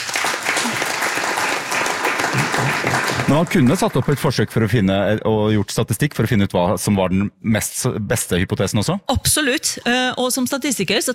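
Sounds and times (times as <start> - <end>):
applause: 0.0 - 4.8
speech: 3.3 - 11.1.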